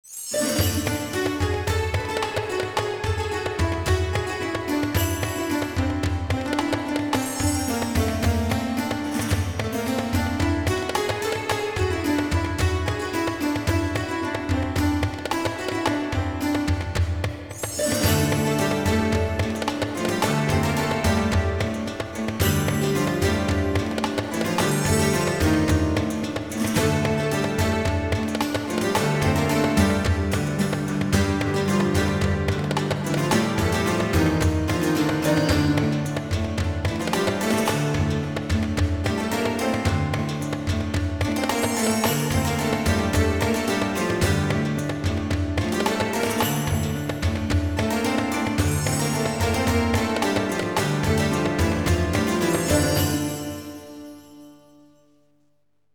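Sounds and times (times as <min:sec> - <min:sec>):
Moorish Arabian music: 0:00.0 - 0:55.2.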